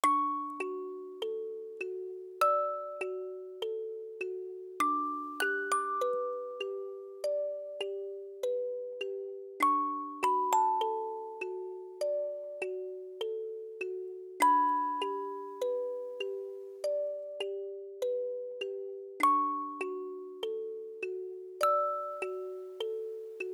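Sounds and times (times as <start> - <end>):
music box: 0.0 - 23.5.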